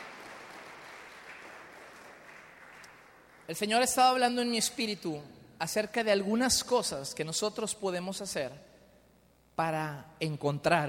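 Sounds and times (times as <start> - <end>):
audience applauding: 0.0 - 3.7
speech: 3.5 - 8.7, 9.6 - 10.8.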